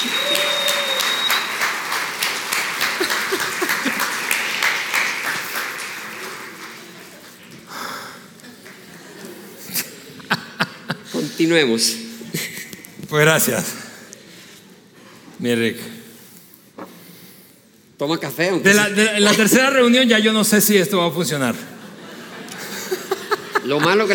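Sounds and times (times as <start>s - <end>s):
audience applause: 0.0s - 9.3s
laughter: 2.4s - 4.8s, 8.8s - 11.4s, 19.1s - 19.9s, 21.5s - 24.1s
speech: 11.4s - 12.0s, 13.1s - 13.8s, 15.4s - 16.0s, 18.0s - 21.7s, 23.7s - 24.1s.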